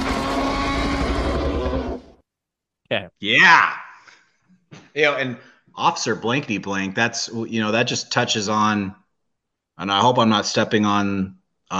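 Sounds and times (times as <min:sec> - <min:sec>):
T-Rex roar sound effect: 0:00.0 - 0:02.2
speech: 0:02.9 - 0:03.8, 0:05.0 - 0:09.0, 0:09.8 - 0:11.7.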